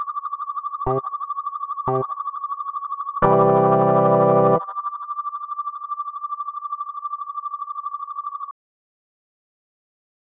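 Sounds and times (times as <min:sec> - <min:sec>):
tempo delay effect: 0:00.9 - 0:01.1, 0:01.9 - 0:02.2, 0:03.2 - 0:04.8.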